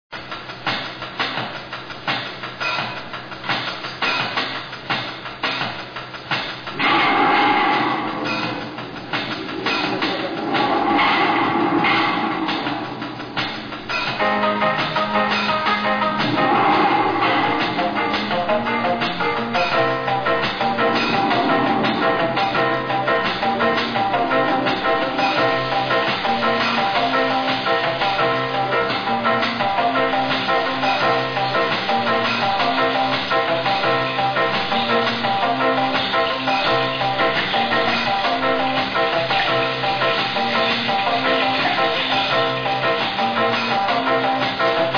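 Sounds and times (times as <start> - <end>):
rhythmic beat: 0.1 - 44.9.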